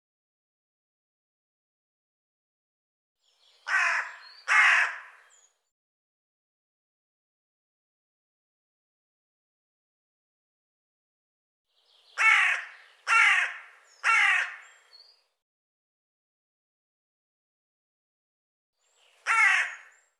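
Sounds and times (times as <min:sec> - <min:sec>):
bird harsh cawing: 0:03.6 - 0:05.4, 0:12.1 - 0:14.9, 0:19.2 - 0:20.1.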